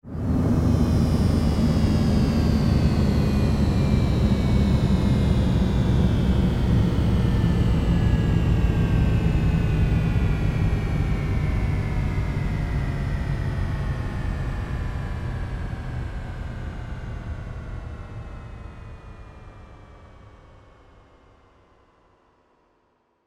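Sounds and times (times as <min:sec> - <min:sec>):
spaceship engine descending and powering down: 0:00.1 - 0:18.4.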